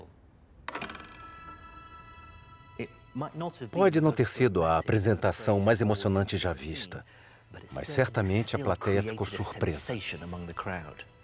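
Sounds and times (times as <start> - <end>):
bell ringing: 0.7 - 3.9
speech: 2.8 - 11.2.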